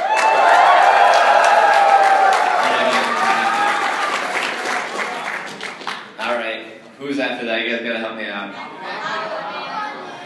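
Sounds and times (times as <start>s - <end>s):
audience cheering and applauding: 0.0s - 6.1s.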